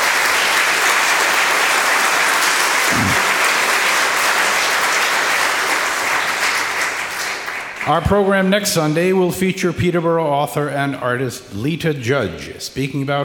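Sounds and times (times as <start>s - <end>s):
audience applause: 0.0s - 8.2s
speech: 7.9s - 13.2s.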